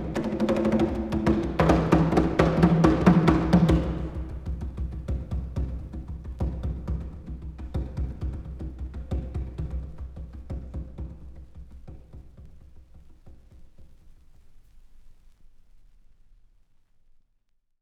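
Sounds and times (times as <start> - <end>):
conga solo: 0.0 - 13.2.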